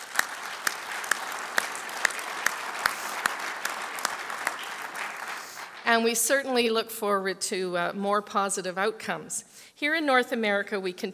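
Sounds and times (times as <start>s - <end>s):
crowd applauding: 0.0s - 6.0s
speech: 5.9s - 11.1s.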